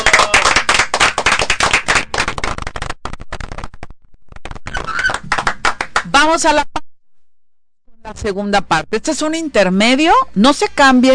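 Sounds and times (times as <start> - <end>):
audience applause: 0.0 - 3.0, 4.9 - 6.0
speech: 6.2 - 6.7, 8.1 - 11.1.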